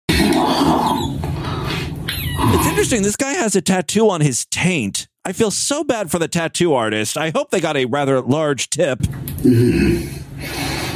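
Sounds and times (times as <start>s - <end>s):
small squeaky fart: 0.1s - 2.8s
speech: 2.8s - 10.8s.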